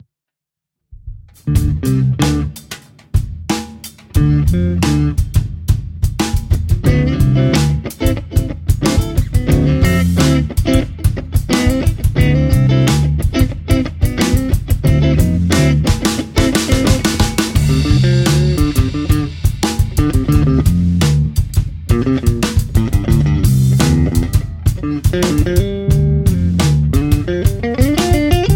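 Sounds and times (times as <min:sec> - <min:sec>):
funk groove: 0:01.3 - 0:28.5.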